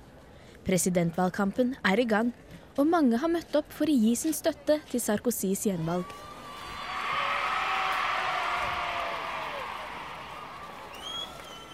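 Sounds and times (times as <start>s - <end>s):
speech: 0.7s - 6.3s
crowd cheering at a political rally: 6.0s - 11.7s.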